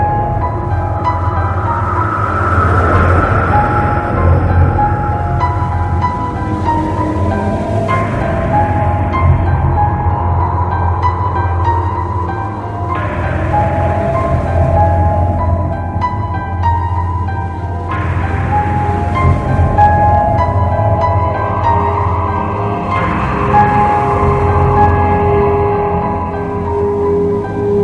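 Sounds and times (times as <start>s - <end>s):
ambience: 0.0s - 27.8s.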